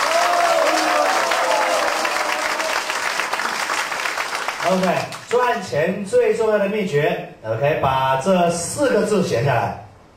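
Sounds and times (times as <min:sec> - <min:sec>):
audience applause: 0:00.0 - 0:05.3
speech: 0:04.6 - 0:09.8.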